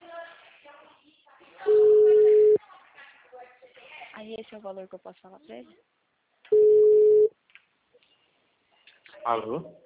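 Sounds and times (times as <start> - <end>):
telephone tone as a call drops: 1.7 - 2.6, 6.5 - 7.3
speech: 4.3 - 5.9, 9.2 - 9.8.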